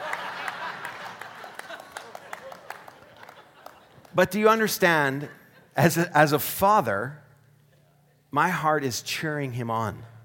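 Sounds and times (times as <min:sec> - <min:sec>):
audience clapping for a pastor's son who has sung: 0:00.0 - 0:04.7
laughter: 0:00.0 - 0:06.1
speech: 0:04.2 - 0:07.2, 0:08.3 - 0:10.1.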